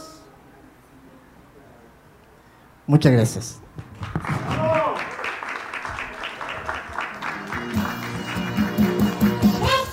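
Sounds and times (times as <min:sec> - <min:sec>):
speech: 0:03.0 - 0:03.6
crowd applause: 0:03.9 - 0:09.6.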